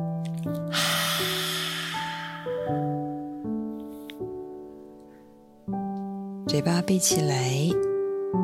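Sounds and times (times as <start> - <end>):
soft sustained music: 0.0 - 8.4
slow inhale during seated yoga relaxation practice: 0.7 - 3.0
speech: 6.5 - 7.9.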